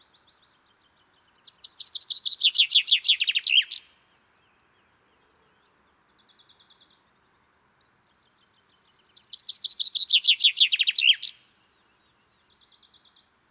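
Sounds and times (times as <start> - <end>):
common chaffinch Fringilla coelebs singing descending trilled phrases: 1.4 - 4.0, 9.1 - 11.5.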